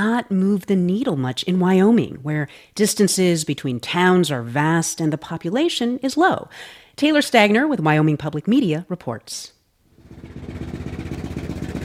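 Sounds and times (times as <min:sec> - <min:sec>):
speech: 0:00.0 - 0:10.9
rusty blue Ford Bronco engine pulling into a gas station in central Wyoming: 0:09.9 - 0:11.8.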